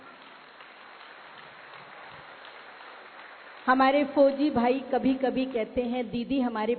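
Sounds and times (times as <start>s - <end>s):
audience applause: 0.0s - 3.9s
speech: 3.7s - 6.7s.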